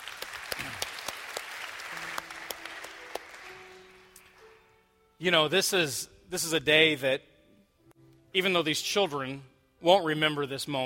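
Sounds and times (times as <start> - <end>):
church congregation applause welcoming families for a child dedication: 0.0 - 4.6
speech: 5.2 - 7.3, 8.4 - 10.8.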